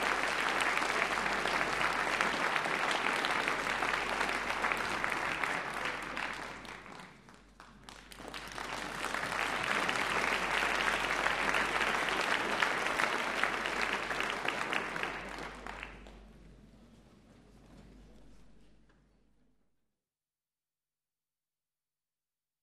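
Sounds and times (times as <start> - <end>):
stormy concert applause: 0.0 - 16.2.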